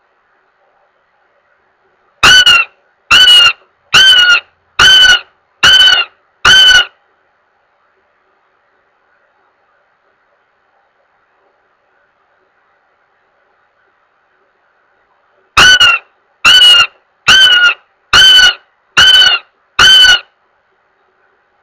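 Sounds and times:
goshawk giving harsh level wailing notes: 2.2 - 6.9, 15.6 - 20.3.

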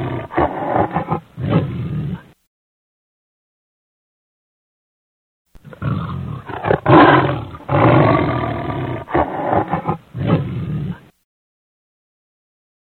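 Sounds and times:
lion giving deep throaty roars: 0.0 - 2.3, 5.6 - 11.1.

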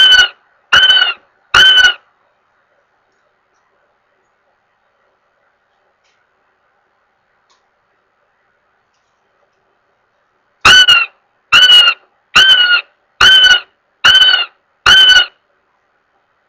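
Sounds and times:
Northern goshawk wailing with loud drawn-out nasal squeals: 0.0 - 2.0, 10.6 - 15.4.

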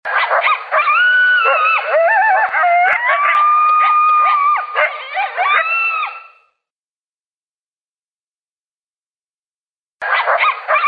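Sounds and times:
group of coyotes yipping and howling: 0.0 - 6.6, 10.0 - 10.8.

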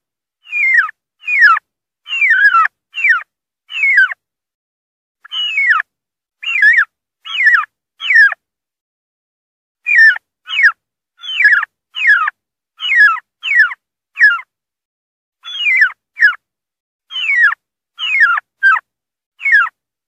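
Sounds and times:
wild turkey distress calling: 0.4 - 4.2, 5.2 - 8.4, 9.9 - 14.4, 15.4 - 16.4, 17.1 - 18.8, 19.4 - 19.8.

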